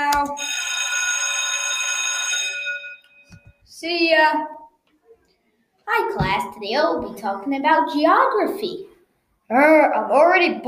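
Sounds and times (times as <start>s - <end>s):
school bell ringing: 0.4s - 3.6s
speech: 3.8s - 4.6s, 5.9s - 8.9s, 9.5s - 10.6s.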